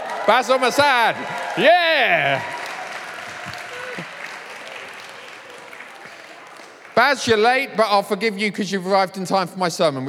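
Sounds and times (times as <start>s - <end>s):
audience clapping at a sermon gathering: 0.0s - 8.2s
speech: 0.3s - 2.5s, 7.0s - 10.0s.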